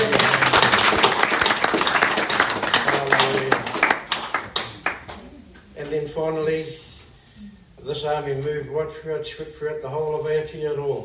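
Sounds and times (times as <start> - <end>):
audience clapping: 0.0 - 5.4
speech: 8.0 - 11.0.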